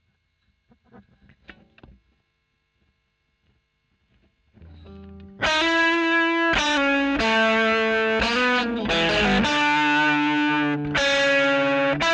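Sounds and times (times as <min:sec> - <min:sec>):
overdriven electric guitar recorded with a Royer microphone: 0:04.6 - 0:12.1.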